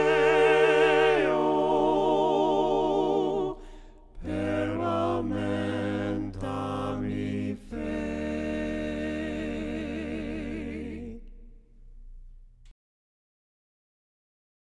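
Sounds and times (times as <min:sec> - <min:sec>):
voices singing hymns a cappella: 0:00.0 - 0:11.7.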